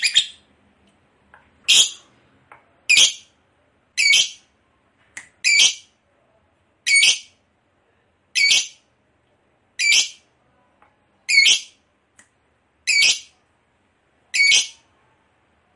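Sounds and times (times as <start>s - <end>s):
lovebird chirps and long harsh chatter: 0.0s - 0.4s, 1.7s - 2.0s, 2.9s - 3.3s, 4.0s - 4.4s, 5.4s - 5.9s, 6.9s - 7.3s, 8.4s - 8.8s, 9.8s - 10.3s, 11.3s - 11.8s, 12.9s - 13.3s, 14.3s - 14.9s.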